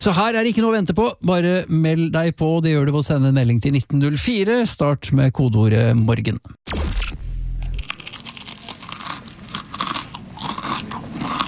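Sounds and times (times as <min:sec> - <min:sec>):
speech: 0:00.0 - 0:07.2
crunching crispbread: 0:07.7 - 0:11.4.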